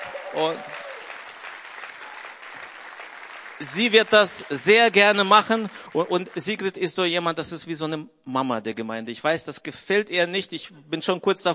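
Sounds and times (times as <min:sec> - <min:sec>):
audience applause: 0:00.0 - 0:06.8
speech: 0:00.3 - 0:00.8, 0:03.6 - 0:11.5.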